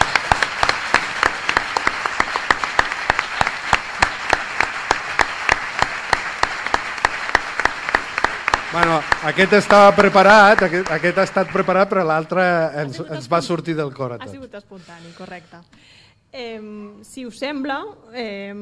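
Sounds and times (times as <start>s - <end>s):
audience applause: 0.0s - 12.9s
speech: 8.8s - 18.5s.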